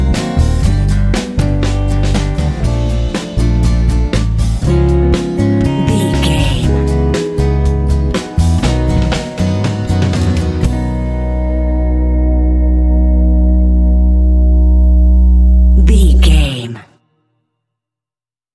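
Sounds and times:
hot powerful medium-tempo new wave rock music: 0.0 - 16.6.

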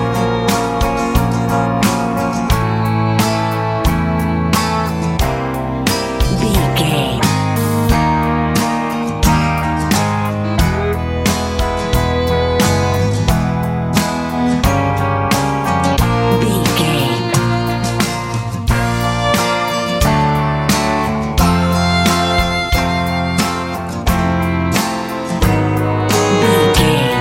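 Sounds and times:
pop rock music: 0.0 - 27.2.

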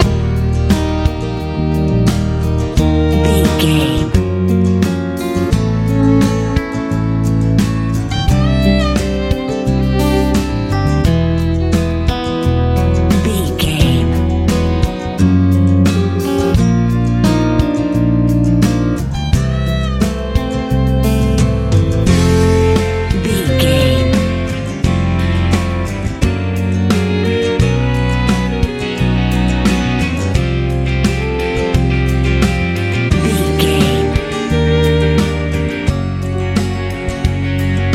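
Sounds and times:
pop rock music: 0.0 - 37.9.

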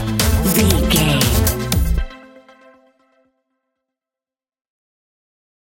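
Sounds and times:
Berlin techno in a minor key at 118 bpm: 0.1 - 2.0.

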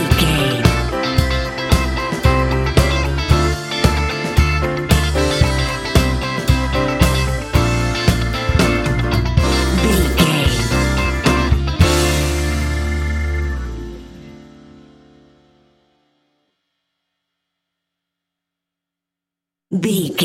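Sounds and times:
disco music: 0.0 - 14.8.

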